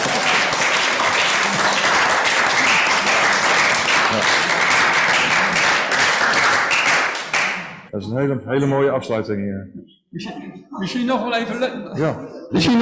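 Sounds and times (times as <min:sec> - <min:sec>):
audience applause: 0:00.0 - 0:07.9
speech: 0:08.0 - 0:12.8.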